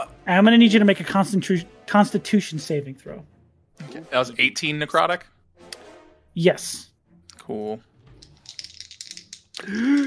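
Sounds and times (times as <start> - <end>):
speech: 0.2 - 3.3, 3.9 - 5.4, 6.4 - 6.9, 7.5 - 7.9, 9.6 - 10.0
rolling dice: 8.1 - 10.0.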